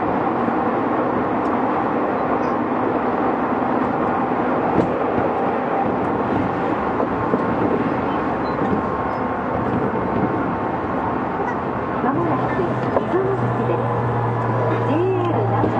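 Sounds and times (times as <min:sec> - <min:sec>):
Tokyu 6000 series express train rumbling onto the Oimachi Line: 0:00.0 - 0:15.7
faint voices: 0:11.2 - 0:15.7.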